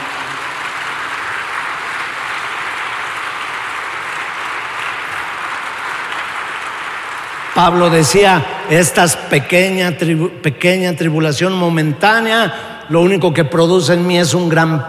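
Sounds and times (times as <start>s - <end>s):
audience applause: 0.0s - 8.4s
speech: 7.6s - 14.8s.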